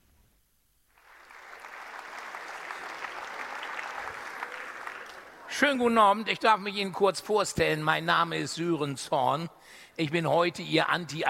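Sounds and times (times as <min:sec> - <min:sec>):
sold-out audience applauding: 0:00.9 - 0:05.8
speech: 0:05.6 - 0:11.2.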